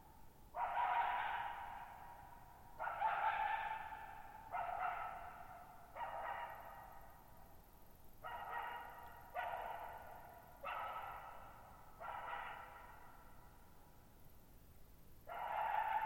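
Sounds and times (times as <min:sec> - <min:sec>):
coyote barking: 0:00.6 - 0:02.2, 0:02.8 - 0:07.1, 0:08.2 - 0:13.3, 0:15.3 - 0:16.0.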